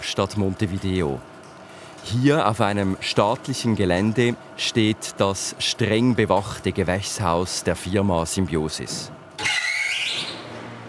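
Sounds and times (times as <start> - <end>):
large greenhouse ventilation fans humming: 0.0 - 10.8
speech: 0.1 - 1.4, 2.0 - 9.3.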